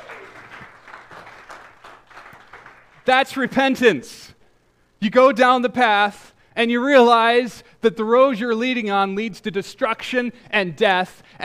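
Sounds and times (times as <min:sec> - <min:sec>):
audience applause: 0:00.0 - 0:03.0
speech: 0:03.1 - 0:04.2, 0:05.0 - 0:11.4.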